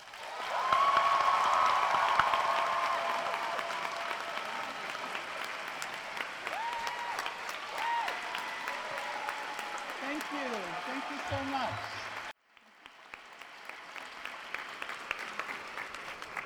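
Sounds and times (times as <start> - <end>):
audience applause welcoming Professor Davis at a lecture in New Orleans: 0.0 - 16.4.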